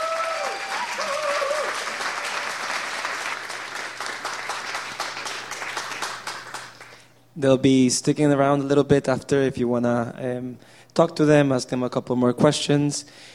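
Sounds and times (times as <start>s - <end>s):
audience round of applause: 0.0s - 7.0s
speech: 7.4s - 13.3s.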